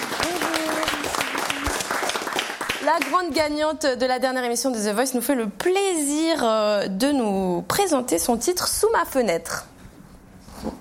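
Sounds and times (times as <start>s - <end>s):
audience applause: 0.0s - 3.2s
speech: 2.9s - 9.7s.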